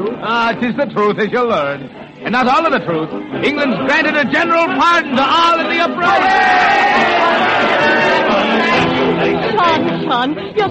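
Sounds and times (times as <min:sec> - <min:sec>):
speech: 0:00.1 - 0:10.7
Irish and English soldiers cheering and shouting together: 0:05.7 - 0:09.0.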